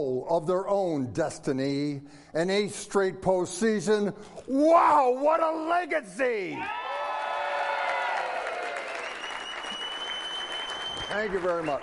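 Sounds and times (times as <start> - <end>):
speech: 0.0 - 6.8, 11.1 - 11.8
crowd applause: 6.7 - 11.8.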